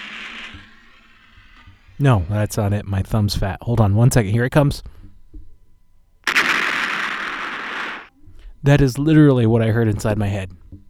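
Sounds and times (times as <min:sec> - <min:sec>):
speech: 0:02.0 - 0:05.0, 0:08.6 - 0:10.6
explosion sound effect like an apartment blowing up: 0:06.3 - 0:08.1.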